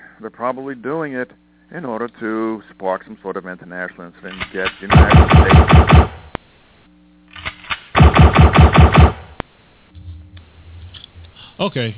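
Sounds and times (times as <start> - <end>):
speech: 0.2 - 6.2, 11.6 - 11.9
machine gun fire: 4.4 - 6.3, 7.4 - 9.4.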